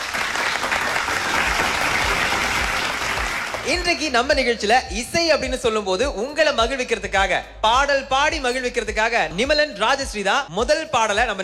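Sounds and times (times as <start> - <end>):
audience applause: 0.0 - 3.8
speech: 3.7 - 11.4.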